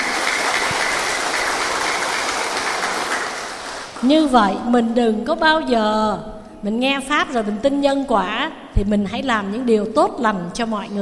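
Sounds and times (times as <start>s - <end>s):
crowd round of applause: 0.0s - 4.1s
speech: 4.0s - 11.0s.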